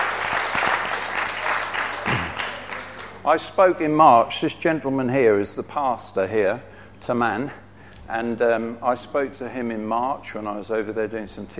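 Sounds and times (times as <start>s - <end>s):
audience applause: 0.0s - 3.2s
speech: 3.2s - 11.5s.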